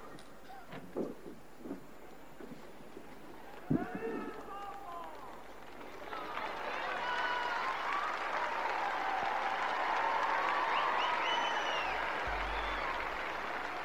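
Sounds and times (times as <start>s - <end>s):
crowd of nearly 10,000 people applauding: 3.4s - 13.8s.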